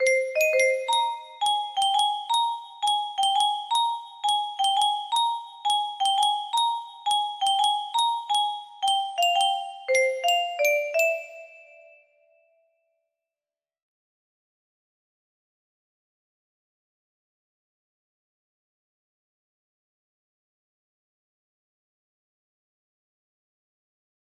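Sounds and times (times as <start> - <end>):
music box: 0.0 - 12.2.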